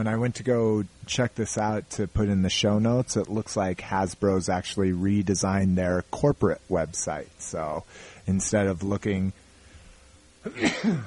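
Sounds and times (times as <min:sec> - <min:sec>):
speech: 0:00.0 - 0:09.4, 0:10.4 - 0:11.0
sneeze: 0:10.5 - 0:11.0.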